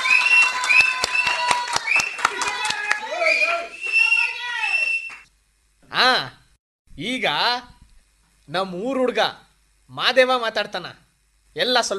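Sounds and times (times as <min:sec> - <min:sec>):
shrill whistles: 0:00.0 - 0:02.4, 0:03.0 - 0:05.3
crowd clapping at a village gathering: 0:00.0 - 0:05.3
lively voices: 0:01.0 - 0:05.2
speech: 0:07.0 - 0:07.7, 0:08.5 - 0:11.0, 0:11.6 - 0:11.9.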